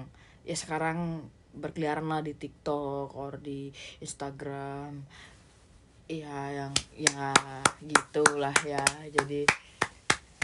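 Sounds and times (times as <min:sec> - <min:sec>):
speech: 0:00.0 - 0:05.4, 0:06.1 - 0:09.7
manual hand claps: 0:06.8 - 0:10.4.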